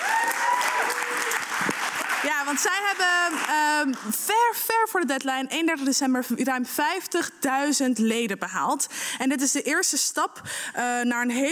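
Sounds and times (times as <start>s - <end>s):
applause: 0.0s - 4.2s
speech: 2.5s - 11.5s.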